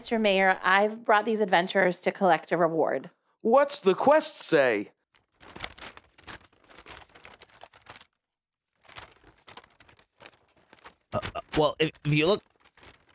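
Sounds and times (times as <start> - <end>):
speech: 0.0 - 5.6, 11.1 - 12.5
paper card being unfolded: 5.1 - 13.1.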